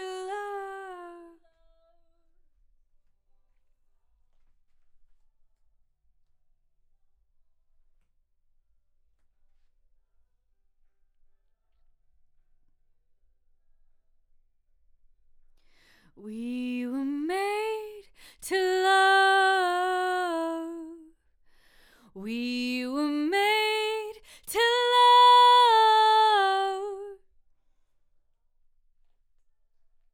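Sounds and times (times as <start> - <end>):
voice: 0.0 - 1.4, 16.2 - 21.1, 22.2 - 27.2.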